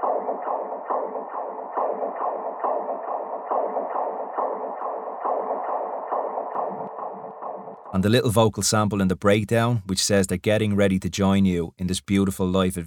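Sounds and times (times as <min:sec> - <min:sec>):
fetal heartbeat from an ultrasound monitor: 0:00.0 - 0:07.9
speech: 0:07.9 - 0:12.8.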